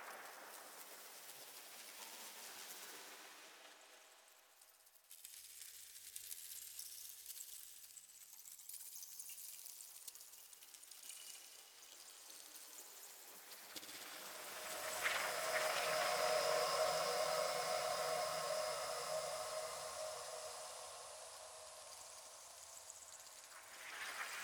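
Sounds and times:
ambient atmosphere: 13.4s - 24.4s.

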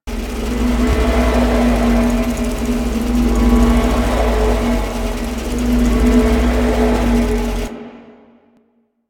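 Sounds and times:
large moon clock machine loop: 0.0s - 7.7s.

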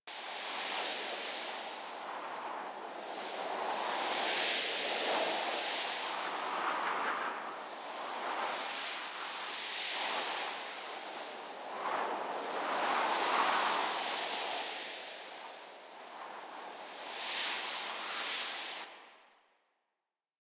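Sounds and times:
exterior wind: 0.1s - 19.1s.

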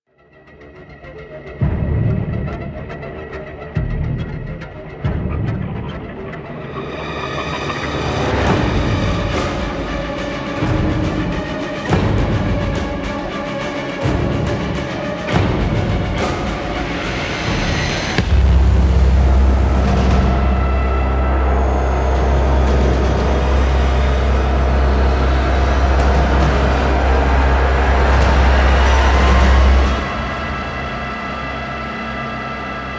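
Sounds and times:
football club music: 0.1s - 32.9s.

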